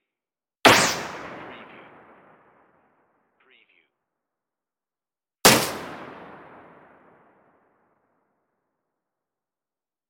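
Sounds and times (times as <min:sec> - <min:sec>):
dirty sci-fi gunshots: 0:00.6 - 0:02.8, 0:05.4 - 0:07.5.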